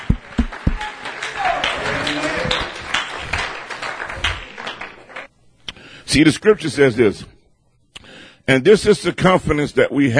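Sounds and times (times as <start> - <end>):
audience clapping hands: 0.0 - 5.3
speech: 6.1 - 7.4, 8.5 - 10.1.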